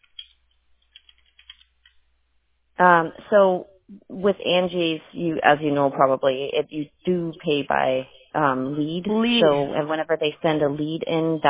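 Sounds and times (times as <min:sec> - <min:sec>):
typing notes on a computer keyboard: 0:00.0 - 0:02.0
speech: 0:02.8 - 0:11.4.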